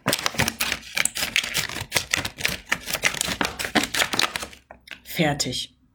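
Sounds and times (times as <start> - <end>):
scissors cutting the top off a milk carton: 0.0 - 4.6
speech: 5.2 - 5.8.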